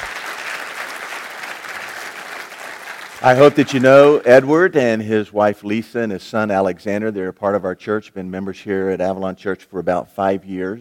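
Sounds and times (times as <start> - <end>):
church congregation applauding to welcome a member: 0.0 - 4.8
speech: 3.2 - 10.7.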